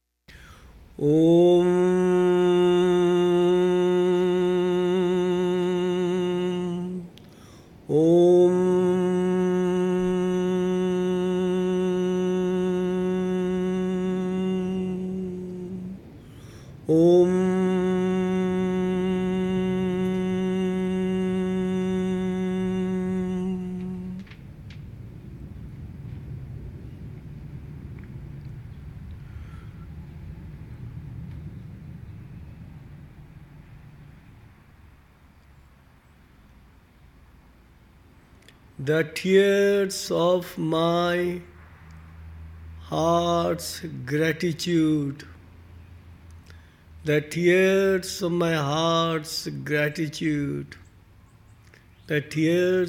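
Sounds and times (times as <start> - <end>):
opening Aum chant: 1.0 - 7.2, 7.8 - 24.5, 38.8 - 41.7, 42.8 - 45.4, 47.0 - 50.8, 52.0 - 52.8.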